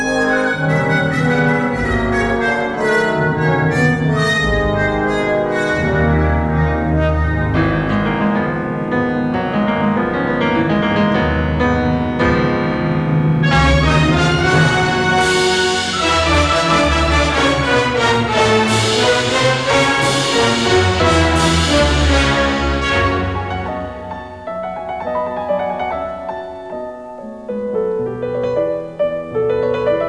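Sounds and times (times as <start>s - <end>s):
classical music: 0.0s - 30.0s.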